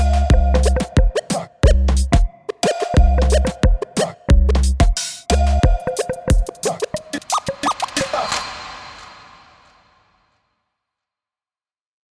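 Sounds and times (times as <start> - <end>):
zouk bass music: 0.0 - 7.5.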